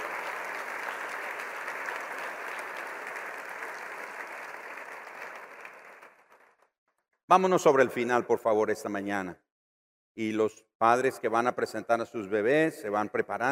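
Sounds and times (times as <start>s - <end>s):
audience applause: 0.0s - 6.6s
speech: 7.3s - 9.4s, 10.2s - 13.5s.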